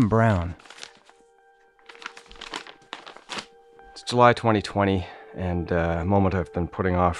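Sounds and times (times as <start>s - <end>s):
speech: 0.0s - 0.6s, 4.1s - 7.1s
bulky hand-printed paper envelope rustling at home in Toronto: 0.0s - 1.2s, 1.8s - 3.5s.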